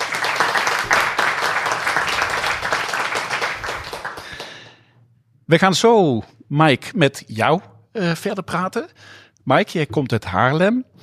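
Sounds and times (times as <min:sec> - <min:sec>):
audience applause: 0:00.0 - 0:04.7
speech: 0:05.5 - 0:11.0.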